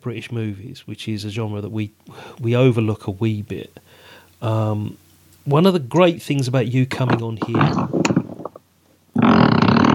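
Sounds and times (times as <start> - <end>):
speech: 0.0 - 3.8, 4.4 - 7.9
sofa creaking under shifting weight: 7.0 - 8.6, 9.2 - 9.9.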